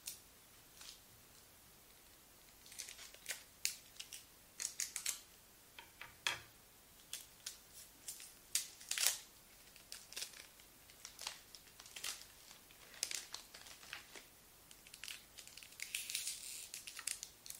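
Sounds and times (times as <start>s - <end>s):
gift wrapping paper crinkling: 2.0s - 5.3s, 7.0s - 17.5s.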